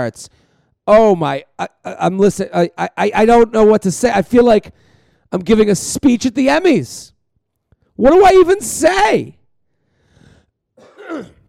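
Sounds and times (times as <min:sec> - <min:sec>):
speech: 0:00.0 - 0:07.2, 0:08.0 - 0:09.4, 0:11.1 - 0:11.4
phlegmy cough: 0:10.8 - 0:11.4.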